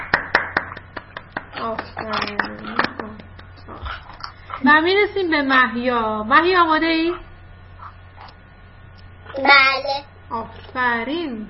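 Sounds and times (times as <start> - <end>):
children clapping: 0.0 - 3.5
speech: 1.6 - 7.3, 9.4 - 11.4.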